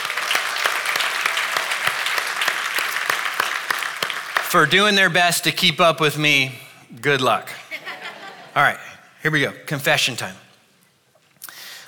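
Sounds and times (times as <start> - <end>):
audience applause at a church service: 0.0 - 4.7
speech: 4.5 - 7.5, 8.6 - 10.4
laughter: 7.6 - 8.7.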